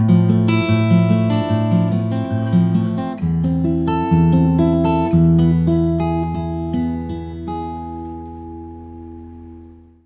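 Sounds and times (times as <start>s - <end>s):
picking in A: 0.1s - 9.9s.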